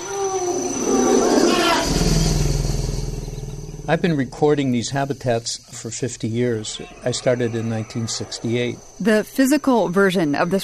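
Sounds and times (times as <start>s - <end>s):
elephant family calls at a marsh: 0.0s - 8.9s
elephants' low throbbing rumble: 1.8s - 7.0s
speech: 3.9s - 10.6s.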